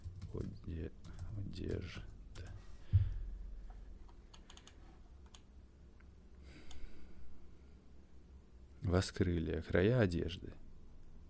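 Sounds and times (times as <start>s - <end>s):
typing a search query on a computer keyboard: 0.0s - 2.5s, 4.3s - 5.5s
speech: 0.8s - 2.1s, 8.9s - 10.6s.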